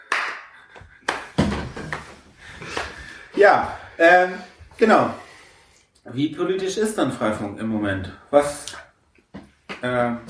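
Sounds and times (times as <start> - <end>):
clapping: 0.0 - 3.0
speech: 3.4 - 5.2, 6.0 - 8.8, 9.8 - 10.2.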